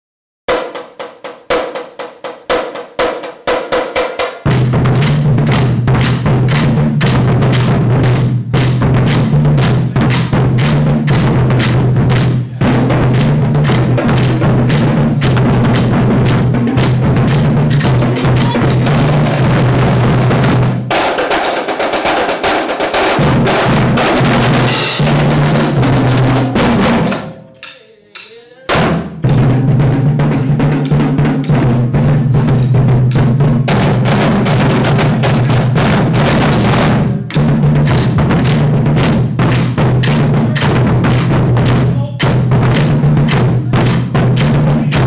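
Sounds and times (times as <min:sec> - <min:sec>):
drumline playing: 0:00.5 - 0:45.0.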